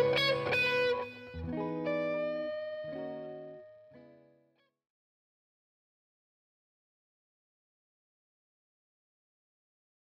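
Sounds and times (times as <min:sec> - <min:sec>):
guitar sample track: 0:00.0 - 0:04.6.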